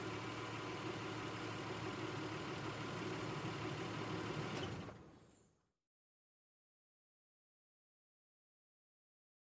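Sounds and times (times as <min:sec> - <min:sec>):
SUV engine starting idling and shutting off: 0:00.0 - 0:05.2.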